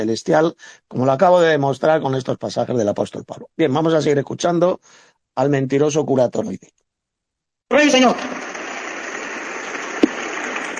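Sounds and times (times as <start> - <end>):
speech: 0.0 - 6.8, 7.7 - 8.4
audience applauding: 8.0 - 10.7.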